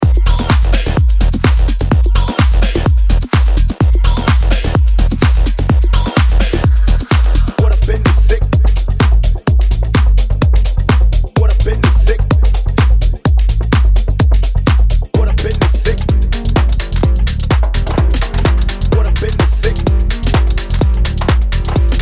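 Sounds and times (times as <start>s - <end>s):
minimal deep tech groove music: 0.0s - 22.0s.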